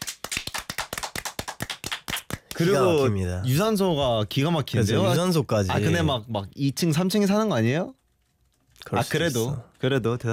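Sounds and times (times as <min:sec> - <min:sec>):
hands clapping rapidly: 0:00.0 - 0:02.8
speech: 0:02.6 - 0:08.0, 0:08.8 - 0:10.3.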